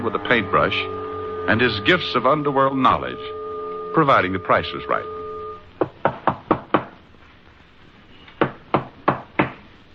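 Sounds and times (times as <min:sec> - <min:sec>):
speech: 0:00.0 - 0:05.2
knocking on a door: 0:05.8 - 0:07.0, 0:08.4 - 0:09.6.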